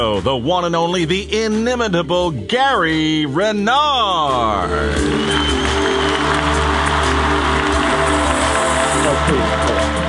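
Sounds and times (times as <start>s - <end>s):
speech: 0.0s - 5.5s
audience applause: 5.0s - 10.0s.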